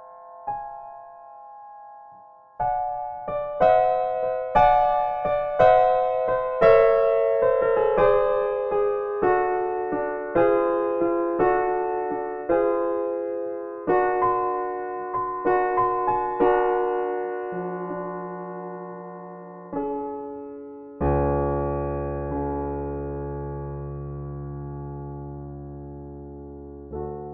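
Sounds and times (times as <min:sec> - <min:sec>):
piano: 0:00.0 - 0:27.3.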